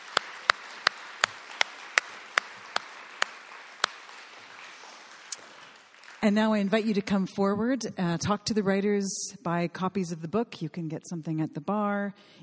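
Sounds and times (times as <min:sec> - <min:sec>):
crowd applauding: 0:00.0 - 0:06.6
speech: 0:06.2 - 0:12.4.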